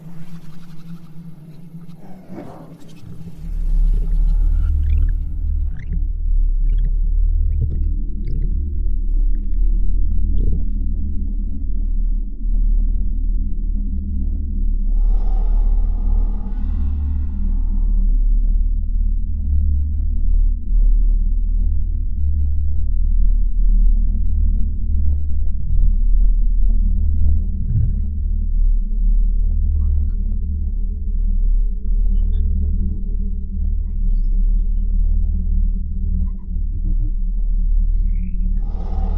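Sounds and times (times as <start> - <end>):
humming middle layer: 0.0 - 20.7, 34.4 - 39.1
deep steady rumbling drone of exoplanet ambience: 0.0 - 39.1.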